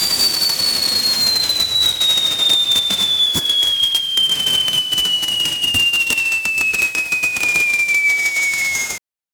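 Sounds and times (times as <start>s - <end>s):
series of balls: 0.2s - 9.0s.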